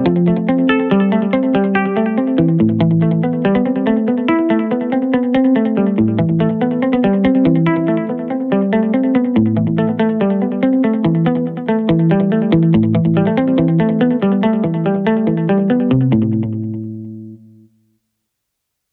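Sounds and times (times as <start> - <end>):
muted guitar: 0.0 - 17.8.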